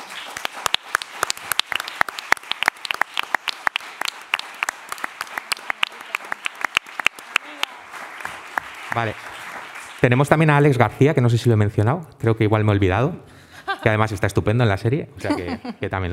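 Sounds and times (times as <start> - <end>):
audience applause: 0.0 - 10.8
speech: 9.0 - 9.3, 10.0 - 16.1
laughter: 13.5 - 14.3, 15.2 - 15.9.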